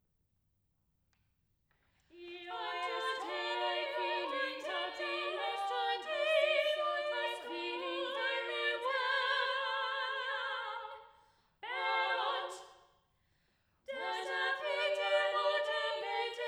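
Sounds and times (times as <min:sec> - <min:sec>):
vocal trio: 0:02.2 - 0:12.8, 0:13.9 - 0:16.4.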